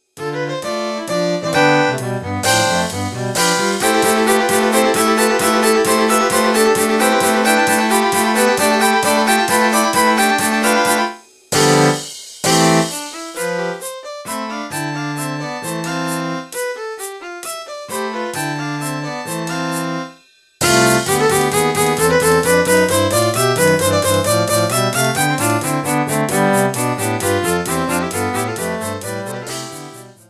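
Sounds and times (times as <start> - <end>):
quintet: 0.2 - 30.2.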